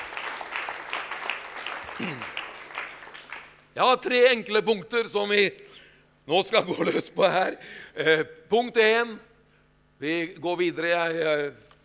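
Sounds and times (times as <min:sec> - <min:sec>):
audience applause: 0:00.0 - 0:03.6
speech: 0:02.0 - 0:02.4, 0:03.8 - 0:09.3, 0:10.0 - 0:11.6.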